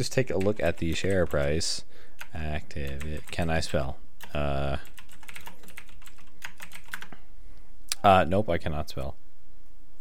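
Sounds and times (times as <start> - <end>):
speech: 0.0 - 4.9, 8.0 - 9.2
computer keyboard typing during a search for news: 0.2 - 7.2.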